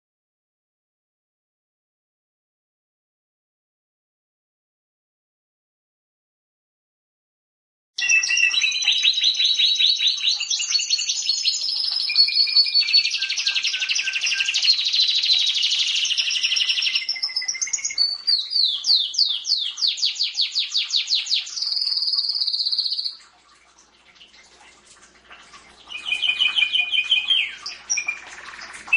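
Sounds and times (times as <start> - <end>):
canary singing trills: 8.0 - 23.2, 25.8 - 28.9.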